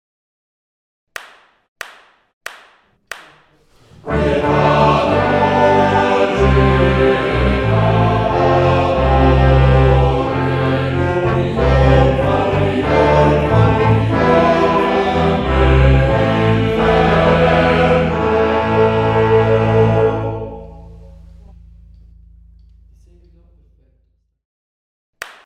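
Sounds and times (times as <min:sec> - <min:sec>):
choir singing: 0:03.9 - 0:21.0.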